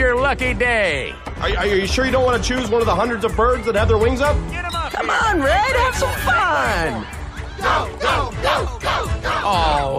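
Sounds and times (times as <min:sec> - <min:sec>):
speech: 0:00.3 - 0:09.9
crowd cheering: 0:04.8 - 0:09.9.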